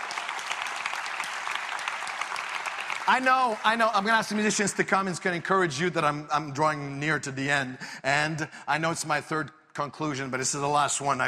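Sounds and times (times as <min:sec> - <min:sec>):
crowd clapping: 0:00.0 - 0:05.2
speech: 0:03.1 - 0:11.2.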